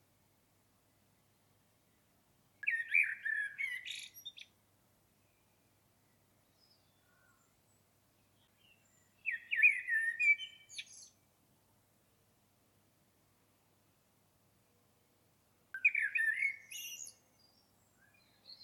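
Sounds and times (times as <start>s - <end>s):
common blackbird song: 2.6s - 11.3s, 15.7s - 18.6s.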